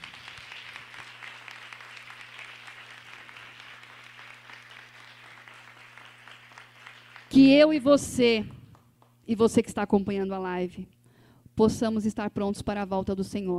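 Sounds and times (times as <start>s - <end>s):
audience applause: 0.0s - 7.4s
speech: 7.3s - 8.6s, 9.3s - 11.0s, 11.6s - 13.5s.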